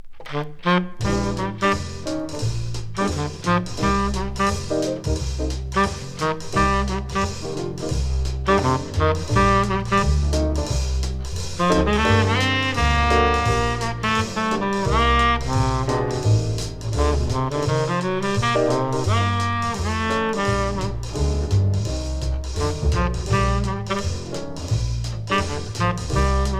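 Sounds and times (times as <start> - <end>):
saxophone: 0.2 - 10.9, 11.5 - 26.5.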